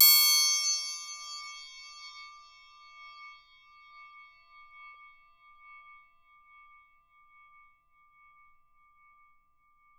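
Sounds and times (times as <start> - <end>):
triangle percussion panned left: 0.0 - 4.4.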